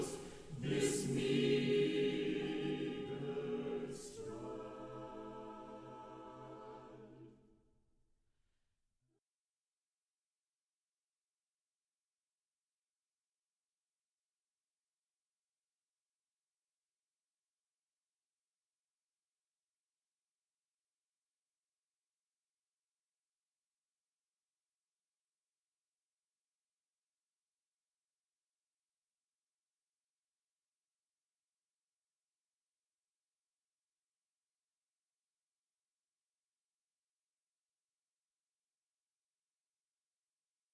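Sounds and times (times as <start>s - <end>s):
chorale music: 0.0s - 7.6s.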